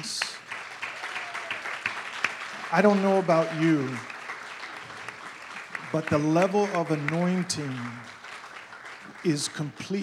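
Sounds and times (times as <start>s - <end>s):
crowd applauding: 0.0s - 10.0s
speech: 2.7s - 4.1s, 5.9s - 8.1s, 9.2s - 10.0s.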